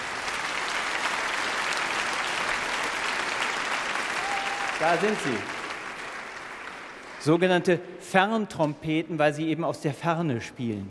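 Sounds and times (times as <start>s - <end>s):
audience applause: 0.0s - 7.4s
speech: 4.8s - 5.6s, 7.2s - 10.8s.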